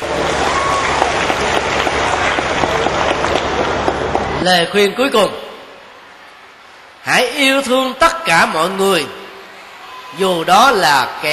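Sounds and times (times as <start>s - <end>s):
audience applause: 0.0s - 4.4s
speech: 4.4s - 5.4s, 7.0s - 9.2s, 10.1s - 11.3s.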